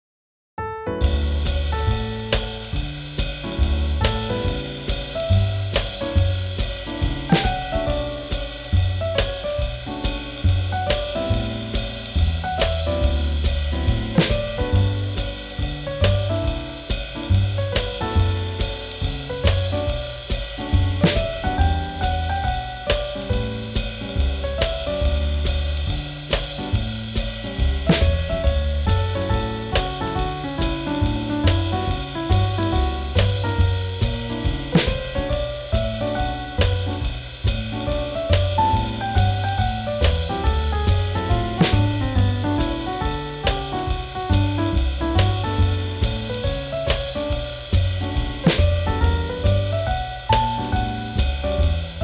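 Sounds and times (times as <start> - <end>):
swing jazz: 1.0 - 52.0.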